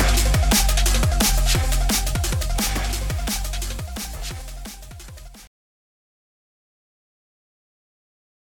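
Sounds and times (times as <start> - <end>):
drum and bass music: 0.0 - 5.5.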